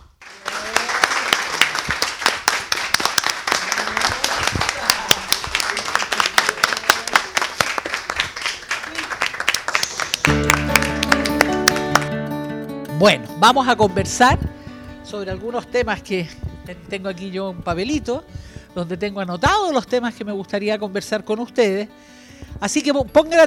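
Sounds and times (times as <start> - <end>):
audience clapping loudly: 0.0 - 12.2
speech: 13.0 - 14.5, 15.1 - 23.4.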